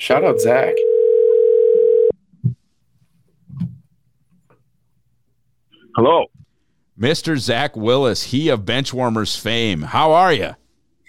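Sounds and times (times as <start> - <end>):
speech: 0.0 - 0.9, 6.0 - 6.3, 7.0 - 10.6
telephone call ringing tone: 0.2 - 2.2.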